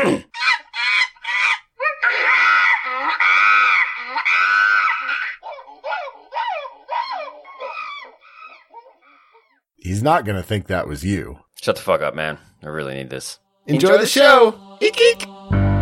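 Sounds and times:
person imitating monkey noises: 0.0s - 9.4s, 14.8s - 15.3s
speech: 9.8s - 15.7s.

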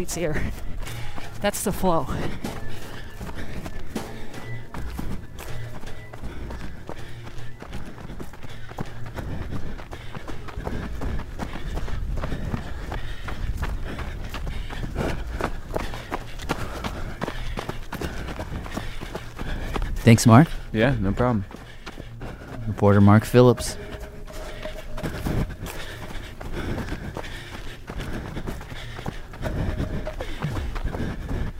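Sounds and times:
breathing: 0.0s - 1.4s, 2.0s - 20.7s, 21.4s - 22.8s, 23.6s - 31.5s
speech: 0.0s - 2.5s, 20.1s - 21.5s, 22.8s - 23.8s
running footsteps: 0.0s - 31.5s
low rumble: 22.2s - 28.6s.

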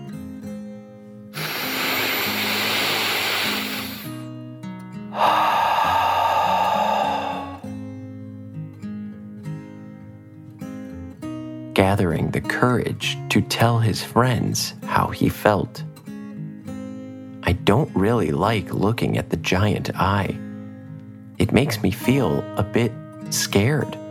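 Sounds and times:
deep breath in and out during a children's meditation: 1.4s - 4.2s, 5.1s - 7.8s
soft calm music: 6.6s - 24.0s
speech: 11.8s - 15.9s, 17.7s - 20.4s, 21.4s - 24.0s.

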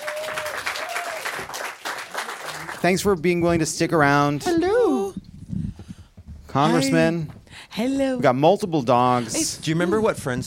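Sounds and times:
audience clapping as guests return to the stage at a live event: 0.0s - 3.6s
speech: 2.8s - 4.9s, 6.6s - 10.4s.

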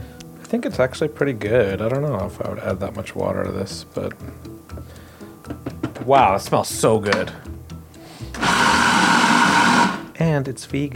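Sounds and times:
speech: 0.5s - 5.0s, 6.0s - 7.5s, 10.2s - 10.9s
blender puréeing soaked ingredients into a vegan fritter batter: 8.3s - 10.2s.

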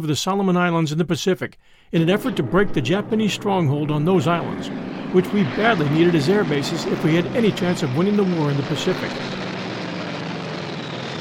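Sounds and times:
speech: 0.0s - 9.4s
F-4U Corsair 2,000-horsepower aircraft engine: 4.7s - 11.1s.

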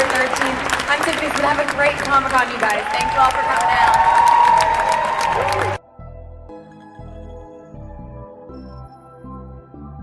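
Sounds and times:
audience applause: 0.0s - 5.8s
speech: 1.1s - 5.8s.

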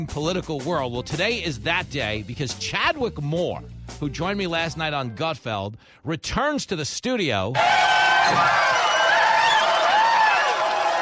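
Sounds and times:
speech: 0.0s - 8.9s
crowd cheering: 7.6s - 11.0s.

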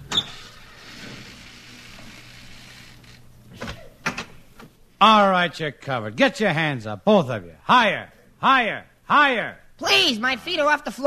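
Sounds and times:
front door being opened: 0.0s - 4.8s
speech: 5.0s - 11.0s.

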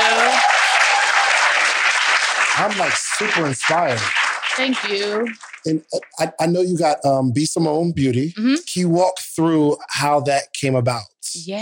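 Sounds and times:
laughter: 0.0s - 1.0s, 2.6s - 4.1s, 5.7s - 11.1s
people clapping: 0.0s - 9.0s
speech: 2.6s - 11.6s.

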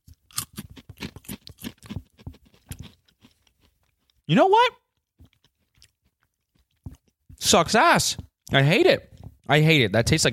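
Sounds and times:
person chewing a crunchy food sample: 0.0s - 4.3s, 4.9s - 7.4s
speech: 4.3s - 4.8s, 7.5s - 10.3s.

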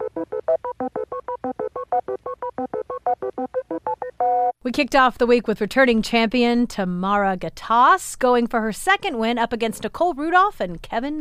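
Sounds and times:
electronic beep boop tones: 0.0s - 4.6s
speech: 4.7s - 11.2s.

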